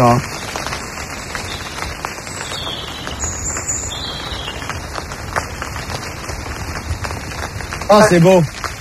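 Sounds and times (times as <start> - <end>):
speech: 0.0 - 0.3, 7.9 - 8.7
rain in forest: 0.0 - 8.7.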